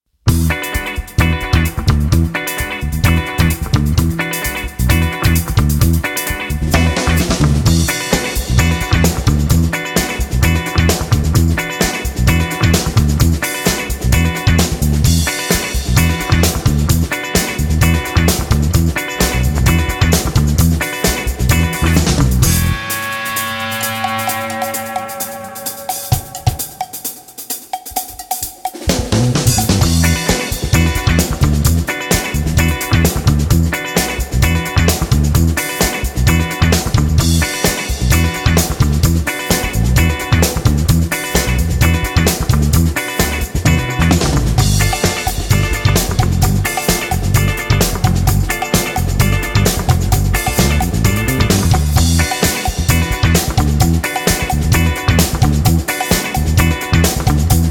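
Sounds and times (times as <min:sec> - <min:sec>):
funk beat: 0:00.3 - 0:57.6.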